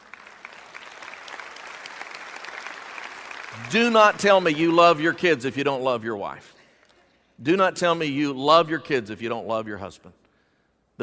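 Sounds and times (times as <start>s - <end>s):
audience applause: 0.0s - 4.8s
speech: 3.5s - 6.6s, 7.4s - 10.2s.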